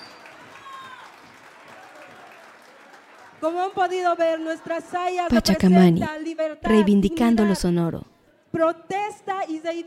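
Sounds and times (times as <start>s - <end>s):
loud applause: 0.0s - 4.6s
speech: 3.4s - 9.8s.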